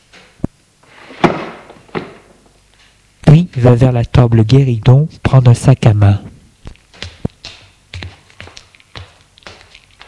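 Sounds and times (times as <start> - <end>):
dresser drawer being closed: 0.8 - 2.5
speech: 3.4 - 6.3.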